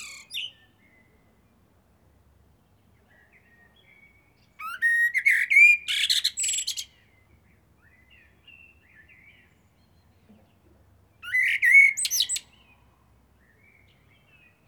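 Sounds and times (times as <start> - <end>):
common blackbird Turdus merula singing: 0.0 - 1.2, 3.0 - 10.2, 11.2 - 12.8.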